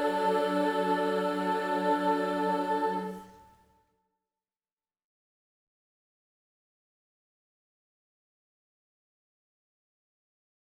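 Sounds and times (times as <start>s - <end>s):
a cappella singing: 0.0s - 3.5s.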